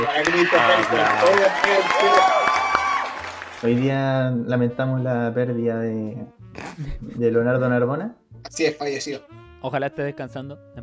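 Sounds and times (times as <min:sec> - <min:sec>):
speech: 0:00.0 - 0:02.4, 0:03.6 - 0:10.8
crowd cheering and whooping: 0:00.0 - 0:03.6
applause: 0:00.0 - 0:03.9.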